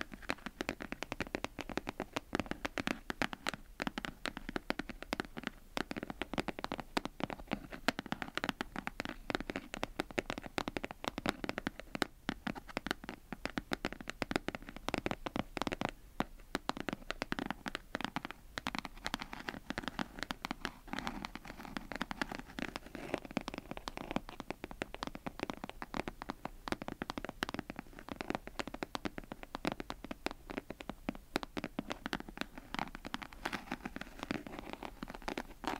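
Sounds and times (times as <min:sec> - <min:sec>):
crisp rapid tapping with soft low thumps: 0:00.0 - 0:35.7.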